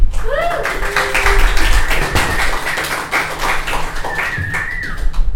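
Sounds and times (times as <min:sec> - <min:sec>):
audience applause welcoming a guest onto a stage: 0:00.1 - 0:05.2
thin whistle-like tones: 0:04.0 - 0:05.1.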